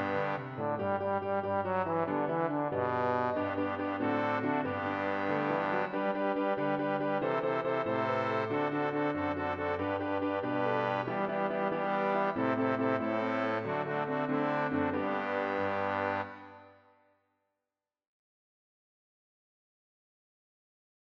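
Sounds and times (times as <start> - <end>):
bass: 0.0 - 16.5.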